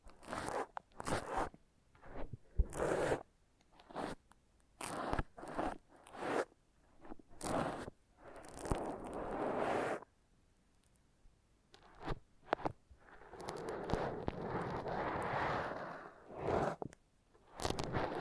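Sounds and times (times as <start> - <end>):
foam massage rubbing: 0.1 - 4.2, 4.8 - 10.1, 11.9 - 16.9.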